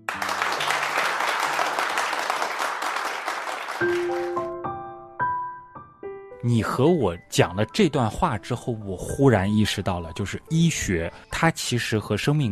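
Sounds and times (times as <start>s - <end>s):
crowd applause: 0.0s - 4.5s
speech: 6.4s - 12.5s.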